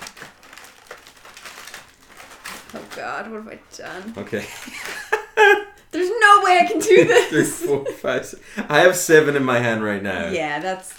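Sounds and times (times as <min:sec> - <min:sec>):
container of double-stuffed cookies rustling as it is opened: 0:00.0 - 0:05.2
speech: 0:02.7 - 0:05.2, 0:05.9 - 0:10.9
laughter: 0:04.3 - 0:09.9.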